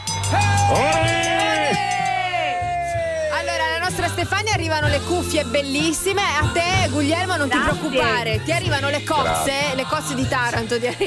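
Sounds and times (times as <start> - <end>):
two people shouting a cheer together: 0.2 - 3.8
speech: 4.1 - 11.0.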